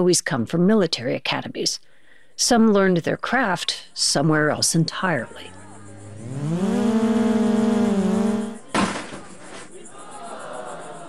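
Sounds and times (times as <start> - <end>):
speech: 0.0 - 5.6, 6.2 - 7.0
racing drones buzzing at an outdoor drone race in a cornfield: 5.5 - 8.6.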